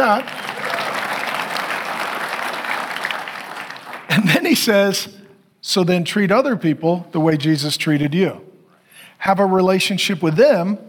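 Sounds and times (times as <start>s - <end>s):
speech: 0.0s - 0.4s, 4.5s - 8.5s, 9.2s - 10.8s
audience clapping: 0.0s - 4.5s.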